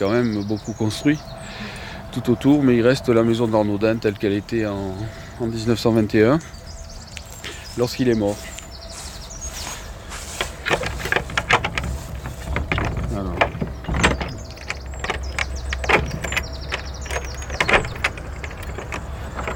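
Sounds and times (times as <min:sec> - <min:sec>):
speech: 0:00.0 - 0:06.6, 0:07.8 - 0:08.5
high squeaky scrapes of an old Gascon door lock: 0:07.7 - 0:19.5
old Gascon door lock being worked open backwards: 0:10.3 - 0:19.5.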